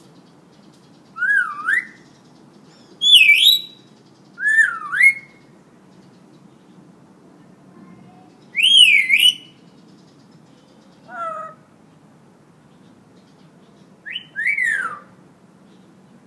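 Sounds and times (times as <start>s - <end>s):
Hill myna in full active song: 3.0s - 3.8s, 4.4s - 5.4s, 8.5s - 9.6s, 14.1s - 15.1s.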